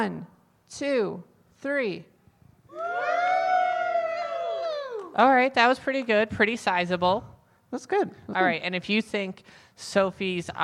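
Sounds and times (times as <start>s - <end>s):
speech: 0.0s - 2.1s, 5.2s - 10.6s
group cheering: 2.7s - 5.2s.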